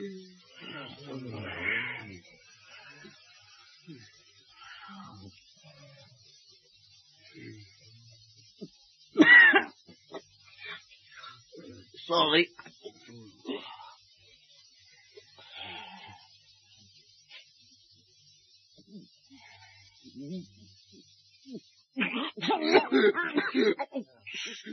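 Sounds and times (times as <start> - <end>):
vocal sounds and faint talk: 0.0 - 24.7
speech: 12.1 - 12.7
laughter: 22.0 - 24.7
person coughing from a tickle in the throat: 22.6 - 23.8.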